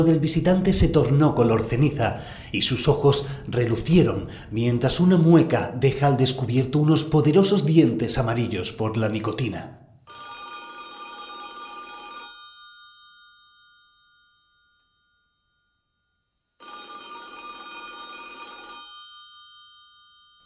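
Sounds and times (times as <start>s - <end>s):
speech: 0.0s - 9.8s
telephone on a small telephone table ringing: 10.1s - 15.3s, 16.6s - 20.4s.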